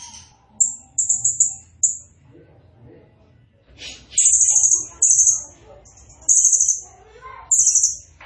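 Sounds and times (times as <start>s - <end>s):
blue-crowned hanging parrot calls: 0.0s - 2.1s, 3.9s - 6.9s, 7.5s - 8.1s.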